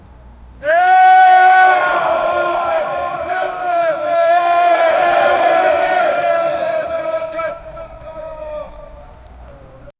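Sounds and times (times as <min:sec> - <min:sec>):
men doing a war cry: 0:00.6 - 0:09.8.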